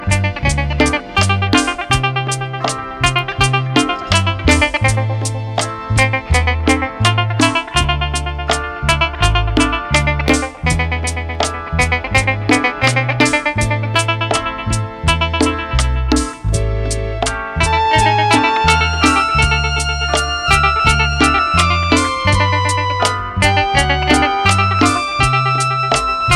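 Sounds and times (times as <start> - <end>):
country music: 0.0 - 26.3.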